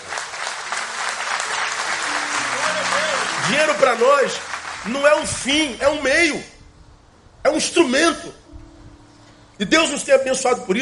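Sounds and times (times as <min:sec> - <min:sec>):
audience applause: 0:00.0 - 0:05.5
speech: 0:03.5 - 0:06.5, 0:07.4 - 0:08.4, 0:09.6 - 0:10.8.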